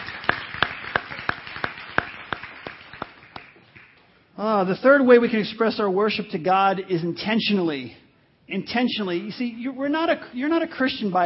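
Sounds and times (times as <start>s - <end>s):
audience clapping: 0.0s - 4.1s
speech: 4.4s - 11.2s.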